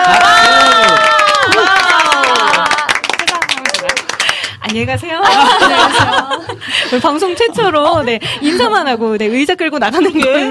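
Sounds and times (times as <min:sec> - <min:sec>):
audience cheering: 0:00.0 - 0:03.2
audience clapping: 0:00.0 - 0:04.8
speech: 0:04.8 - 0:10.4
laughter: 0:05.2 - 0:07.8.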